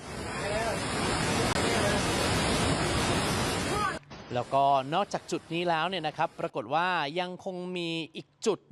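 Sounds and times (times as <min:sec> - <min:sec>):
flash-flood water rising near campsite tents: 0:00.0 - 0:06.5
speech: 0:04.3 - 0:08.6.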